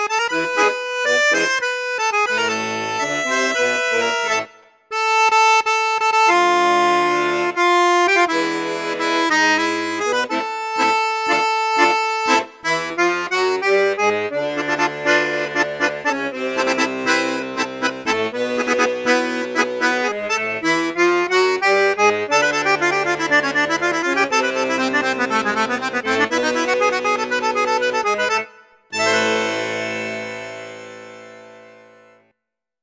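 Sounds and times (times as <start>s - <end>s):
accordion playing on bassoon and flute registers: 0.0s - 32.3s.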